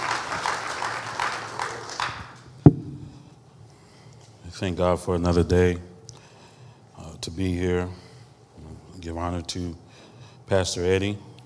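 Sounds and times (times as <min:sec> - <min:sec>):
audience hand clapping: 0:00.0 - 0:02.4
speech: 0:04.6 - 0:05.9, 0:07.4 - 0:08.0, 0:09.0 - 0:09.8, 0:10.5 - 0:11.3.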